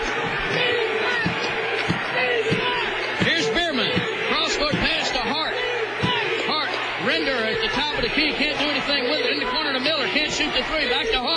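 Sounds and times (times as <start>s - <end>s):
basketball arena crowd cheering: 0.0s - 11.3s.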